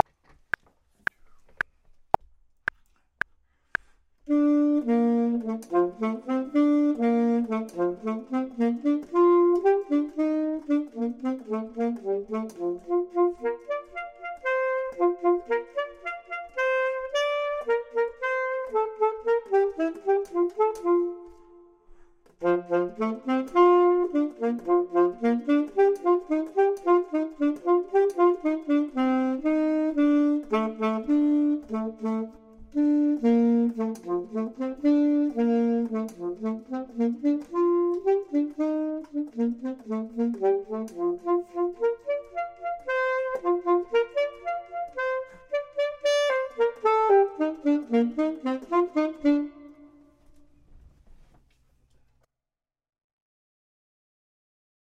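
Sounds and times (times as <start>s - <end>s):
saxophone: 3.7s - 50.6s
clarinet: 4.3s - 50.6s.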